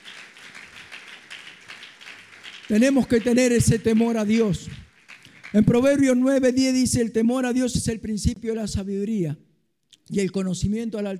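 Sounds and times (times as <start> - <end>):
audience applauding: 0.0 - 6.3
speech: 2.7 - 4.8, 5.5 - 9.4, 10.1 - 11.1.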